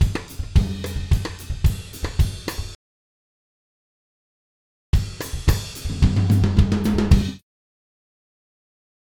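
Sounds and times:
Latin drumbeat loop: 0:00.0 - 0:02.8, 0:05.0 - 0:07.4.

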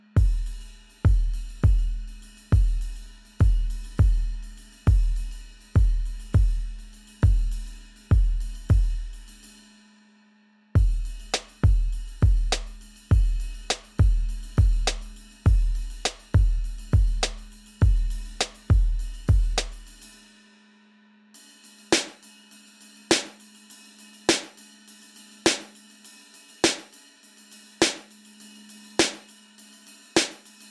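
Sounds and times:
hip hop beat: 0:00.1 - 0:09.3, 0:10.8 - 0:20.0, 0:21.9 - 0:22.3, 0:23.1 - 0:23.4, 0:24.3 - 0:24.6, 0:25.4 - 0:25.8, 0:26.6 - 0:27.0, 0:27.8 - 0:28.2, 0:29.0 - 0:29.3, 0:30.2 - 0:30.6.

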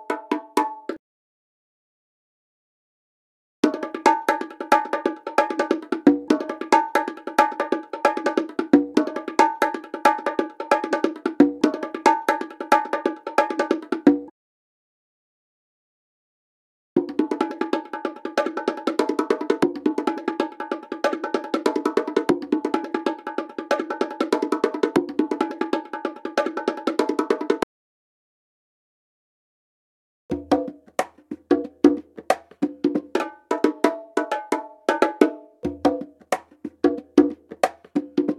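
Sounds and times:
bongo and conga percussion loop: 0:00.0 - 0:01.0, 0:03.6 - 0:14.3, 0:17.0 - 0:27.6, 0:30.3 - 0:38.3.

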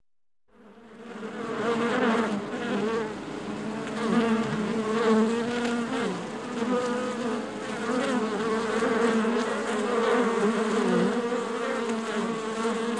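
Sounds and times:
bee humming: 0:00.6 - 0:12.9.

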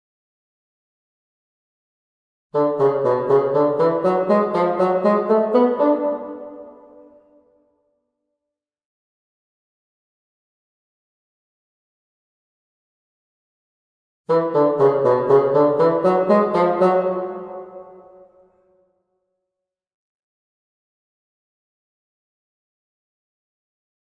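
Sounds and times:
bassoon: 0:02.6 - 0:07.4, 0:14.3 - 0:18.4.

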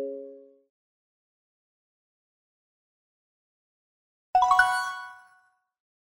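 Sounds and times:
notification sound: 0:04.4 - 0:05.3.

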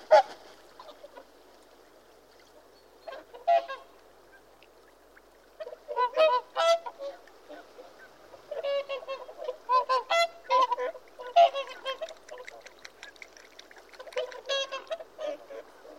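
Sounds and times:
geese honking: 0:05.6 - 0:07.2, 0:08.5 - 0:12.6, 0:14.0 - 0:15.9.

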